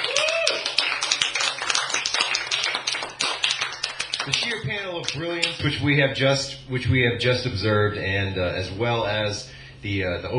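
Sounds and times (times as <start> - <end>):
audience applause for a panel of scientists at an evening event: 0.0 - 5.6
speech: 4.2 - 10.3.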